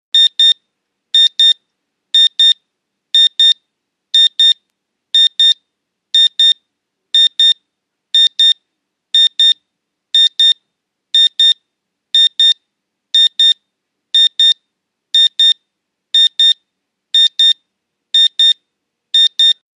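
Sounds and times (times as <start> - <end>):
digital alarm clock single tone: 0.2 - 0.6, 1.2 - 1.6, 2.2 - 2.6, 3.2 - 3.6, 4.2 - 4.6, 5.2 - 5.6, 6.2 - 6.6, 7.2 - 7.6, 8.2 - 8.6, 9.2 - 9.6, 10.2 - 10.6, 11.2 - 11.6, 12.2 - 12.6, 13.2 - 13.6, 14.2 - 14.6, 15.2 - 15.6, 16.2 - 16.6, 17.2 - 17.6, 18.2 - 18.6, 19.2 - 19.6.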